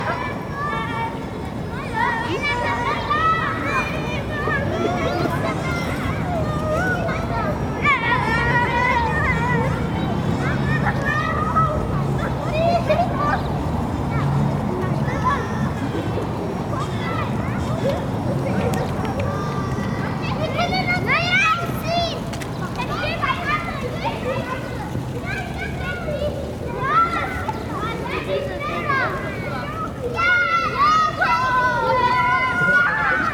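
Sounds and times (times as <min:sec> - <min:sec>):
kids and their parents at a playground in Berlin: 0:00.0 - 0:33.3
mid close traffic in Berlin: 0:00.0 - 0:33.3.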